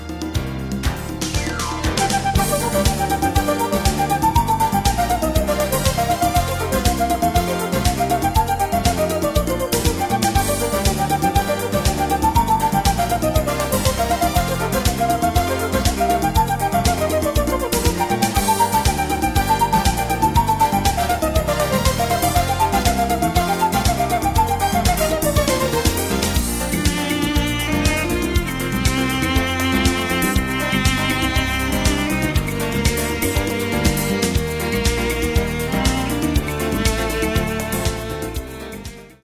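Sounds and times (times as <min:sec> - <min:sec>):
ocarina: 0:00.2 - 0:39.2.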